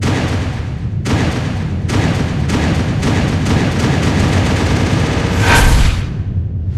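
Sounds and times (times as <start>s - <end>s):
rapid fire bangs: 0.0s - 6.2s.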